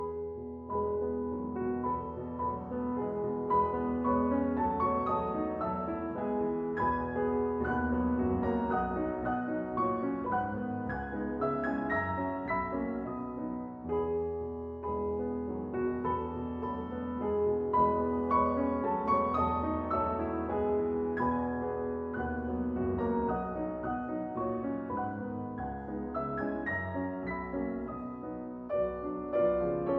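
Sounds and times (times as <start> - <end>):
waltz for piano four hands in E major: 0.0 - 29.9.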